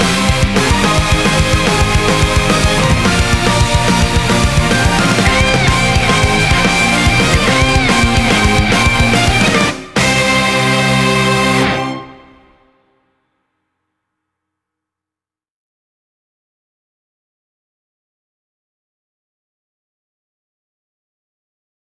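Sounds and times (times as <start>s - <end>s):
instrumental music: 0.0s - 12.8s.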